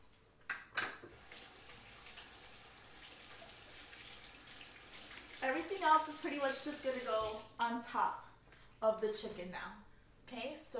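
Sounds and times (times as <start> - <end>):
rinsing hands under running tap water: 1.1 - 7.6
speech: 5.4 - 10.7.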